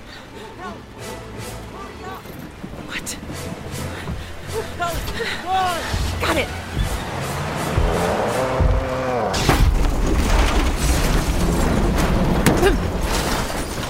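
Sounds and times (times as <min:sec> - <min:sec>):
speech: 0:04.8 - 0:06.7
impact of truck being knocked onto side: 0:06.0 - 0:13.8.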